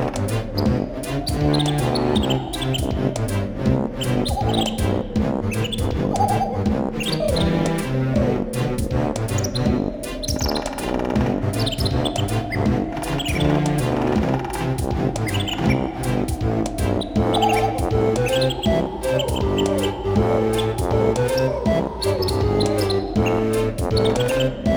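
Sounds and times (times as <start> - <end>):
autumn ambience: 0.0 - 24.7.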